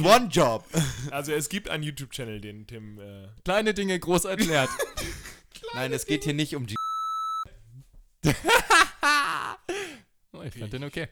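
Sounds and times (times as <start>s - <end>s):
speech: 0.0s - 6.8s, 8.2s - 9.2s, 10.4s - 11.1s
laughter: 4.4s - 5.4s, 8.2s - 9.7s
censor beep tone: 6.8s - 7.5s.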